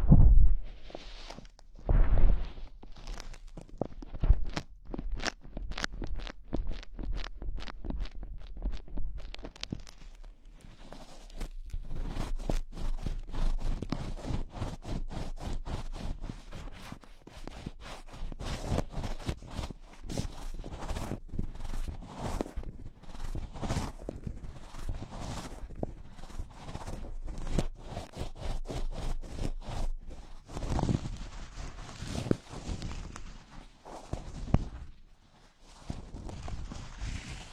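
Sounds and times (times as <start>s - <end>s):
gloves handled, tapping and rustling: 0.8s - 37.5s.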